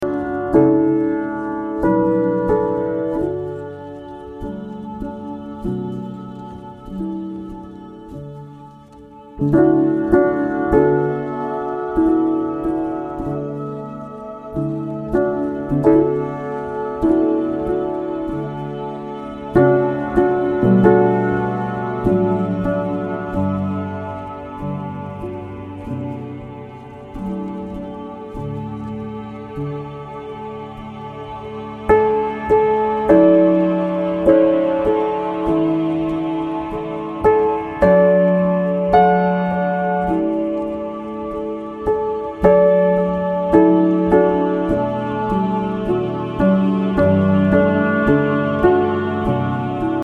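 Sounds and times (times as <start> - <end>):
piano piece: 0.0 - 50.0.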